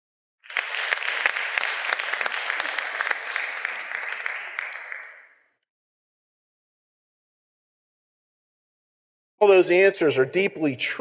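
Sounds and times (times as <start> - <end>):
audience applause: 0.4 - 5.4
speech: 9.4 - 10.9.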